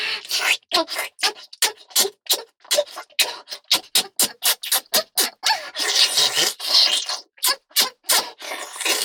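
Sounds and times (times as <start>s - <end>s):
vacuum fellatio sucking sounds: 0.2s - 9.0s
deep tongue kissing sounds: 1.2s - 5.6s, 7.4s - 8.3s.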